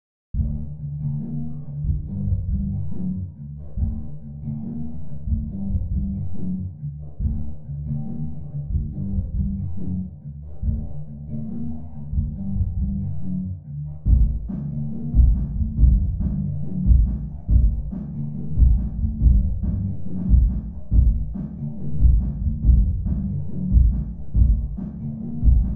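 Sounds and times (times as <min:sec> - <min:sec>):
muffled drum and bass music outside a nightclub: 0:00.4 - 0:25.7.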